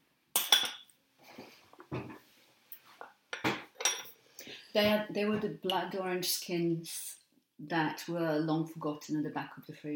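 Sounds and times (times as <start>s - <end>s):
metal cutlery clinking as it is loaded into a dishwasher: 0.4s - 0.9s, 3.4s - 4.2s
speech: 4.7s - 9.9s.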